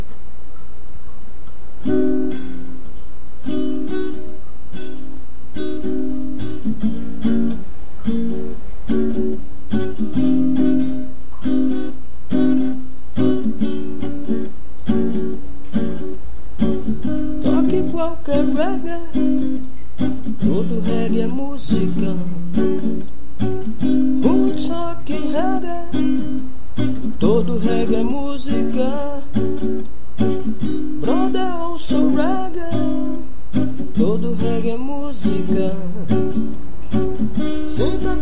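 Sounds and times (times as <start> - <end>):
reggae music: 1.8 - 38.2.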